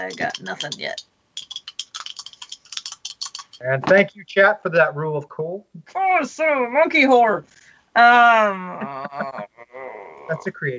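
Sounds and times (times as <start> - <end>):
speech: 0.0 - 1.5, 3.6 - 10.7
dice rolling: 0.1 - 3.6
laughter: 8.5 - 10.7.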